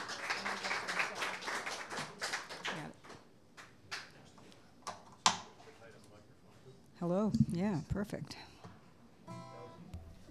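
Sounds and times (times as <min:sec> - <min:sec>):
audience applauding to welcome a songwriter to the stage: 0:00.0 - 0:04.1
speech: 0:07.0 - 0:08.5.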